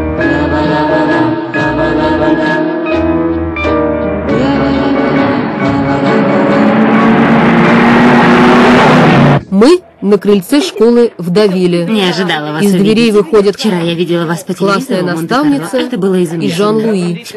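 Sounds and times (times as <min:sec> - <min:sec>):
sustained musical score: 0:00.0 - 0:09.5
rushing road noise: 0:03.0 - 0:10.0
car racing at high speed along an empty morning highway: 0:03.5 - 0:09.5
speech: 0:09.6 - 0:17.3.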